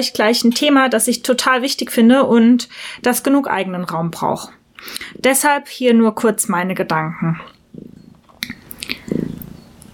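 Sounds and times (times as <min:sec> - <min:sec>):
speech: 0:00.0 - 0:08.0
cat purring: 0:07.6 - 0:08.3, 0:08.9 - 0:09.8.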